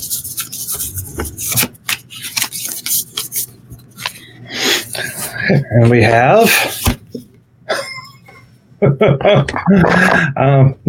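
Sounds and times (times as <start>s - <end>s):
tarot cards being shuffled: 0.0s - 5.3s, 6.5s - 7.2s
speech: 5.5s - 6.8s, 8.8s - 10.8s.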